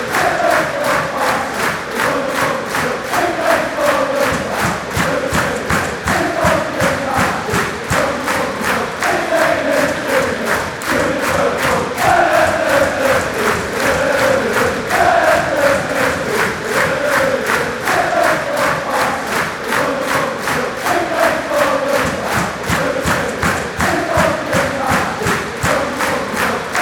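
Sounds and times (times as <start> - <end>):
fan chants in England: 0.0 - 26.8.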